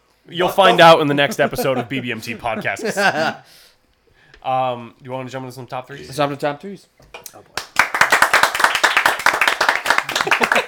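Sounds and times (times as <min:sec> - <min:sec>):
speech: 0:00.2 - 0:03.7, 0:04.4 - 0:07.6, 0:10.2 - 0:10.6
laughter: 0:00.6 - 0:03.4, 0:10.0 - 0:10.6
hand clapping: 0:07.5 - 0:10.6.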